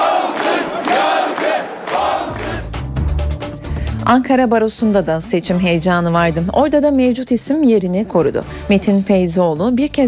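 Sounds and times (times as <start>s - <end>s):
crowd chanting to celebrate a bar association election victory: 0.0s - 2.8s
speech: 4.1s - 10.0s.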